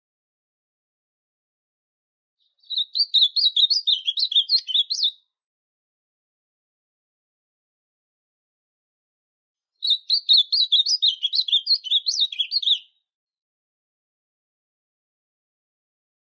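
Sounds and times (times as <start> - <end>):
Ultramarine grosbeak singing warbling phrases: 2.4 - 5.2, 9.8 - 13.0.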